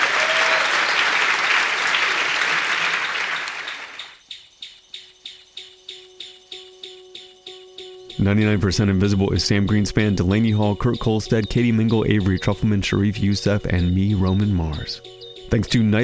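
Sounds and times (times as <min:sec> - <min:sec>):
audience applauding to welcome a guest: 0:00.0 - 0:04.2
pulsing chirp: 0:03.0 - 0:16.0
speech: 0:08.2 - 0:16.0.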